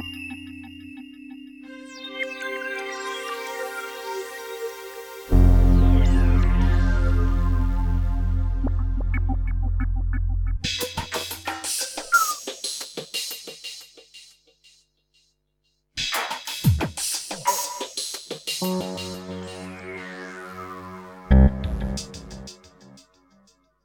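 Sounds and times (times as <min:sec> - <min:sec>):
space ambience: 0:05.3 - 0:10.5, 0:18.6 - 0:23.4.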